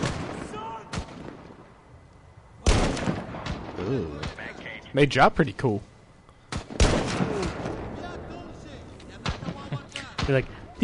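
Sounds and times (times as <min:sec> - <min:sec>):
gunfire in a video game: 0:00.0 - 0:01.4, 0:02.6 - 0:04.5, 0:06.5 - 0:08.1, 0:09.2 - 0:10.4
speech: 0:03.9 - 0:05.9, 0:10.3 - 0:10.8.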